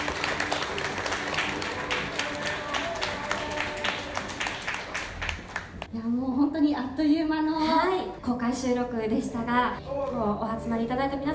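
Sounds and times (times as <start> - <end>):
audience applause: 0.0 - 5.9
speech: 7.0 - 11.3.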